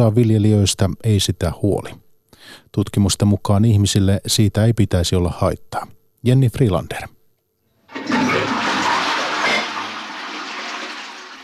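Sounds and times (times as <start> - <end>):
speech: 0.0 - 7.2
toilet flushing: 7.8 - 11.4
toilet tank refilling gurgle: 7.9 - 11.4.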